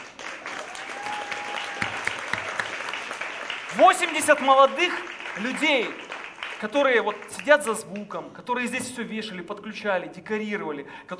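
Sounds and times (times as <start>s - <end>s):
audience applauding: 0.0s - 7.6s
speech: 3.8s - 6.0s, 6.6s - 11.1s.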